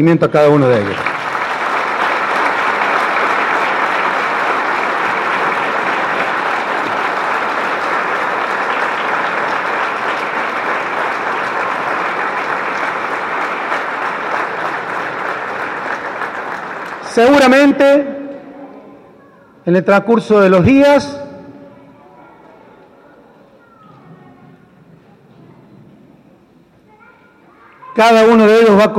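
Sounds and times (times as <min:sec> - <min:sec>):
speech: 0:00.0 - 0:01.1, 0:17.2 - 0:18.1, 0:19.7 - 0:21.2, 0:28.0 - 0:28.9
audience applause: 0:00.5 - 0:17.8.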